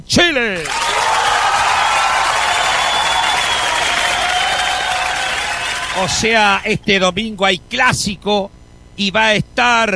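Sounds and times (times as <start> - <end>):
speech: 0.2 - 0.8, 6.0 - 9.9
audience applause: 0.6 - 6.6
faint whistle-like tones: 2.7 - 4.7.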